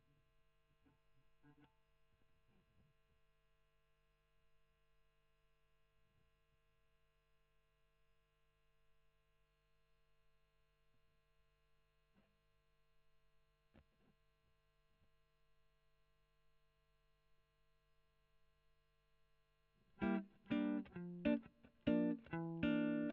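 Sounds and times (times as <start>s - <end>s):
electric guitar recorded with a Gefell microphone: 20.0s - 23.1s.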